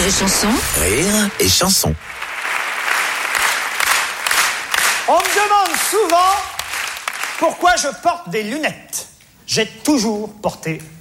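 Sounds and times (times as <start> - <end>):
audience applause at a French comedy show: 0.0 - 7.8
speech: 0.1 - 2.2, 5.1 - 6.6, 7.4 - 10.9.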